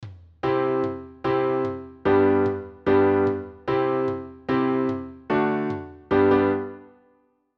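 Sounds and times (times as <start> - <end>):
piano: 0.4 - 7.4.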